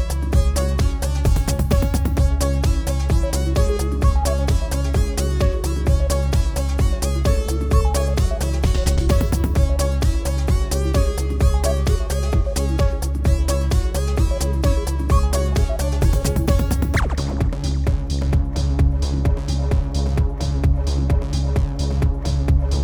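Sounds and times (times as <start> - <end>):
hard electronic racing music loop: 0.0 - 22.8.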